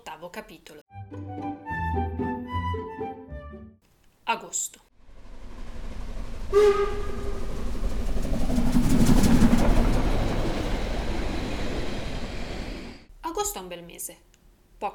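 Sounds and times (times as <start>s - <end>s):
speech: 0.1s - 2.2s, 4.5s - 4.8s, 6.5s - 7.3s, 13.4s - 14.9s
local commuter train rumbling and rattling: 5.1s - 13.1s
local commuter train horn toot: 6.5s - 7.6s.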